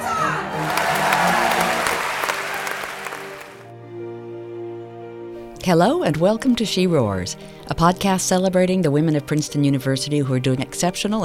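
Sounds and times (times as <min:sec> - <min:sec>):
crowd roaring and cheering: 0:00.0 - 0:03.6
speech: 0:05.7 - 0:11.2.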